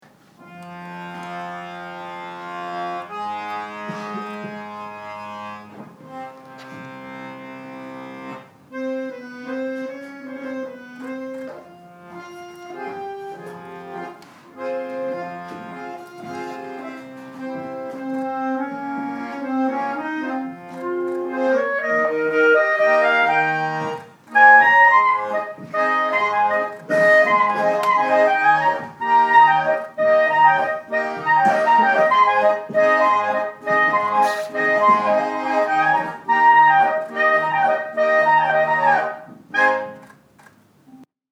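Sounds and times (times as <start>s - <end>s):
accordion: 0.0s - 41.1s
clarinet: 0.3s - 41.1s.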